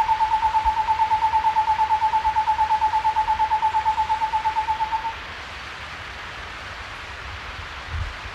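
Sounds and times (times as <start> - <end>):
Cloud-forest Screech-Owl in S. America: 0.0 - 5.2.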